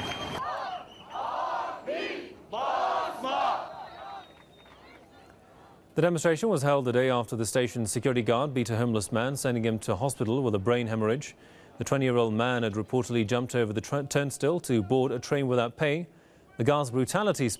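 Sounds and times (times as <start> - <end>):
large protest crowd roaring and chanting in a metro station: 0.2 - 4.3
speech: 6.0 - 17.5.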